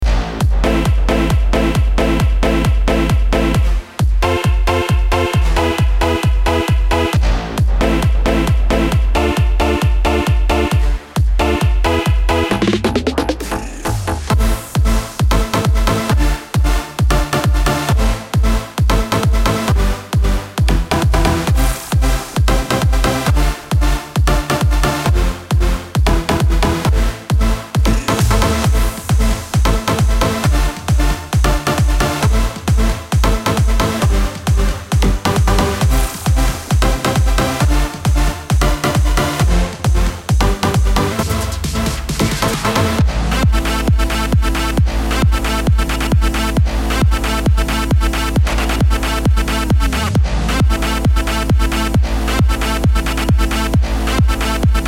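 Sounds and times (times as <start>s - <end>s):
techno music: 0.0s - 54.8s.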